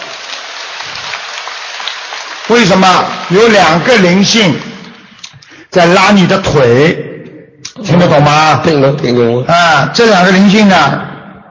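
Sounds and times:
applause from a seated group: 0:00.0 - 0:05.5
speech: 0:02.5 - 0:04.7, 0:05.7 - 0:07.1, 0:07.8 - 0:11.0.

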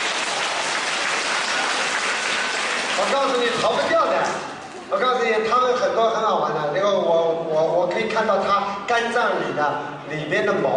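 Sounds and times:
audience applause: 0:00.0 - 0:03.6
speech: 0:03.0 - 0:10.7.

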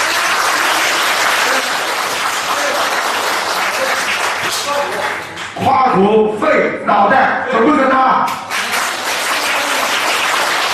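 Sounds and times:
audience applause: 0:00.0 - 0:05.6, 0:08.5 - 0:10.7
speech: 0:06.0 - 0:08.4.

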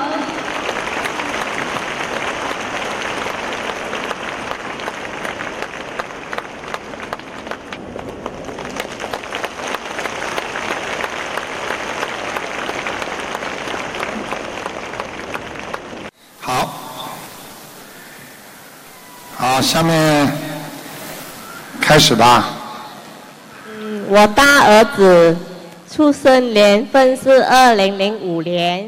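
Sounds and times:
large audience applause: 0:00.2 - 0:17.8
speech: 0:19.7 - 0:20.1, 0:22.0 - 0:22.6, 0:24.1 - 0:28.8.

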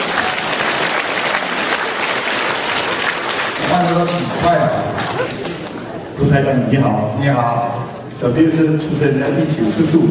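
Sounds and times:
audience applause: 0:00.0 - 0:05.9
speech: 0:03.8 - 0:05.4, 0:06.2 - 0:10.1.

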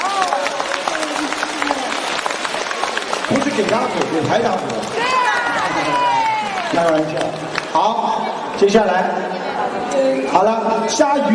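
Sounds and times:
crowd clapping: 0:00.0 - 0:08.3
speech: 0:03.3 - 0:04.9, 0:06.7 - 0:11.3.

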